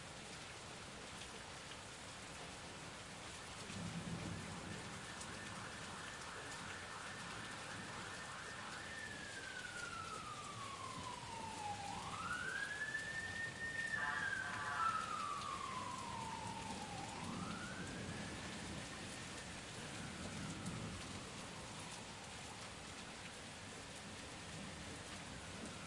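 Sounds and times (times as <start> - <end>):
heavy rain storm heard from under a balcony in daytime: 0.0 - 25.8
sirens: 3.0 - 25.8
heavy thunder: 3.8 - 5.8, 15.2 - 18.9
daytime traffic: 5.0 - 18.3.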